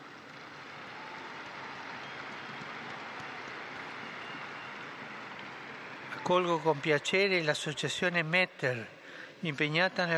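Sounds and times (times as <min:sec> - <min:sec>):
applause for the Swiss Guards: 0:00.0 - 0:07.8
speech: 0:06.2 - 0:10.1.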